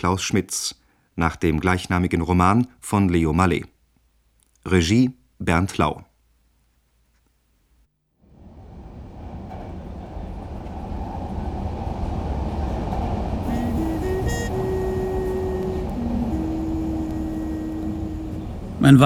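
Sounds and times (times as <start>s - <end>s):
speech: 0.0s - 3.7s, 4.6s - 6.1s, 18.9s - 19.0s
metro train running: 8.3s - 19.0s
shrill sustained tonal squeals: 13.4s - 18.9s.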